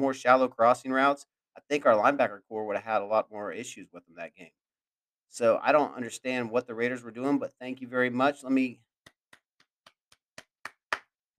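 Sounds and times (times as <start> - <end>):
speech: 0.0 - 4.6, 5.3 - 8.9
slow steady hand clapping: 9.0 - 11.2.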